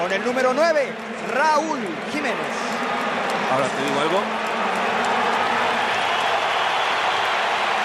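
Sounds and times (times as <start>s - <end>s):
stadium crowd roar: 0.0s - 7.8s
speech: 0.1s - 4.4s
crowd whistling in disapproval: 2.8s - 7.8s.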